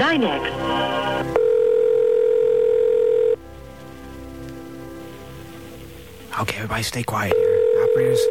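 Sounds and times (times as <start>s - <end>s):
speech: 0.1s - 0.8s, 6.7s - 8.2s
telephone line ringing tone before pickup: 1.2s - 3.4s, 7.3s - 8.2s.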